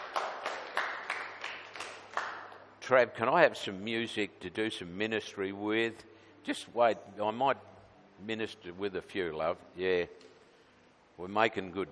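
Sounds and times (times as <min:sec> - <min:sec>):
church congregation clapping as an offering of praise: 0:00.0 - 0:02.8
speech: 0:02.9 - 0:10.3, 0:11.2 - 0:11.9.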